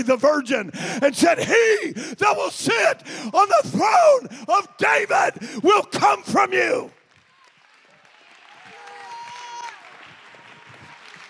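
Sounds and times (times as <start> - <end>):
speech: 0.0 - 7.0
audience clapping: 6.9 - 11.2.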